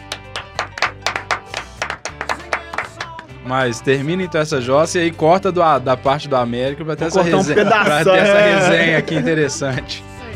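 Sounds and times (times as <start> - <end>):
hand clapping: 0.0 - 3.4
speech: 3.5 - 10.0
laughter: 7.1 - 9.9.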